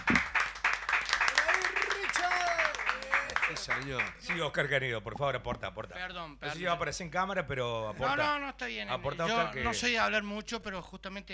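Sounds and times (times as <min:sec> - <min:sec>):
applause: 0:00.0 - 0:04.5
speech: 0:03.6 - 0:11.3.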